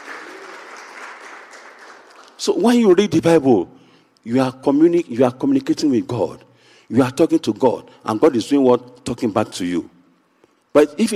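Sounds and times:
audience clapping: 0:00.0 - 0:02.6
speech: 0:02.4 - 0:10.0, 0:10.7 - 0:11.1.

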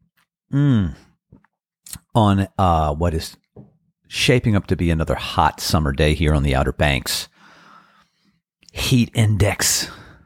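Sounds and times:
speech: 0:00.5 - 0:01.1, 0:02.2 - 0:03.4, 0:04.1 - 0:07.3, 0:08.7 - 0:10.0
person sipping coffee: 0:00.8 - 0:02.0.

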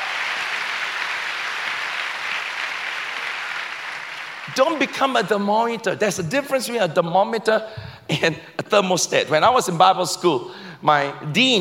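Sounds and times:
audience clapping: 0:00.0 - 0:05.2
speech: 0:04.5 - 0:11.6.

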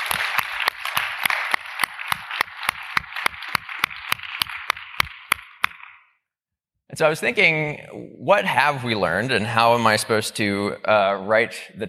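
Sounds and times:
audience applause: 0:00.0 - 0:05.8
sharp evenly spaced claps from someone: 0:00.0 - 0:06.1
speech: 0:07.0 - 0:11.8.

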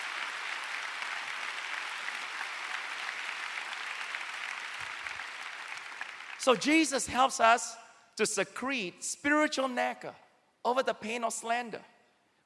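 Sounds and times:
audience clapping: 0:00.0 - 0:06.9
speech: 0:06.4 - 0:11.9.

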